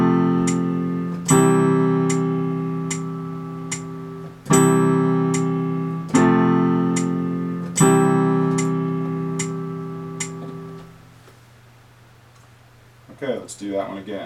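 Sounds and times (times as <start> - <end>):
rhythm ear training exercise: 0.0 - 11.0.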